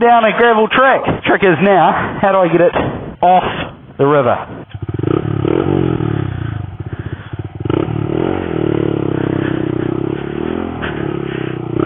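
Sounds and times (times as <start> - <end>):
speech: 0.0 - 4.6, 5.6 - 6.0
Honda Monkey mini motorcycle engine revving: 2.8 - 11.8.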